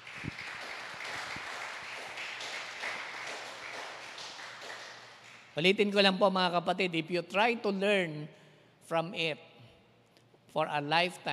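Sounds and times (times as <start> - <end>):
church congregation clapping for the Lord: 0.0 - 5.7
speech: 5.6 - 9.5, 10.5 - 11.3.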